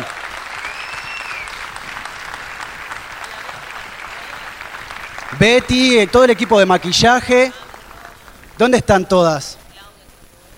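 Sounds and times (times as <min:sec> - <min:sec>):
audience clapping: 0:00.0 - 0:09.4
faint whistle: 0:00.6 - 0:01.6
speech: 0:05.3 - 0:07.6, 0:08.6 - 0:09.6.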